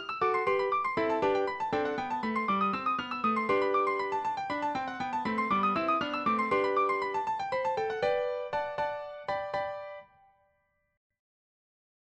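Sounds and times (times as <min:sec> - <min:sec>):
piano trio playing a scherzo: 0:00.0 - 0:10.0.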